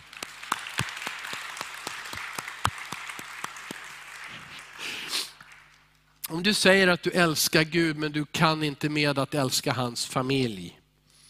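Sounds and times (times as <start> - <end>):
audience applause: 0.0 - 6.0
speech: 6.3 - 10.8.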